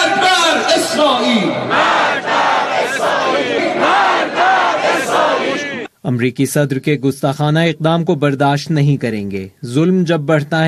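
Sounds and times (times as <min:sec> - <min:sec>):
crowd chanting slogans in Tehran's Palestine Square: 0:00.0 - 0:05.9
speech: 0:06.1 - 0:10.6.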